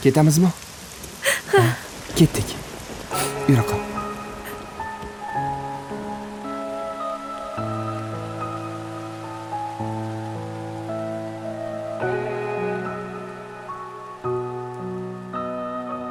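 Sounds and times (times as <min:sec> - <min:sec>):
speech: 0:00.0 - 0:00.7, 0:01.5 - 0:03.8
steady rain patter: 0:00.0 - 0:16.0
sustained melodic music notes: 0:03.1 - 0:07.8.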